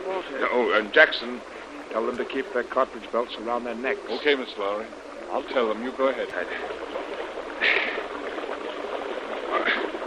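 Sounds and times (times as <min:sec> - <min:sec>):
rushing river water: 0:00.0 - 0:10.0
speech: 0:00.2 - 0:06.8
feet splashing through a river: 0:05.3 - 0:10.0.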